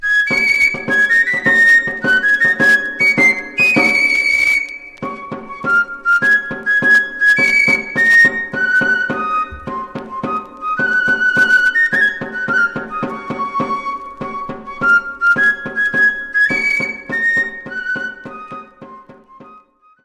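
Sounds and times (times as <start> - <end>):
Basque dance music from France: 0.0 - 19.8.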